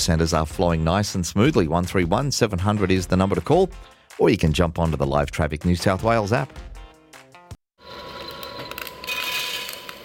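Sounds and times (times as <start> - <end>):
speech: 0.0 - 6.7
coffee being roasted: 7.8 - 10.0.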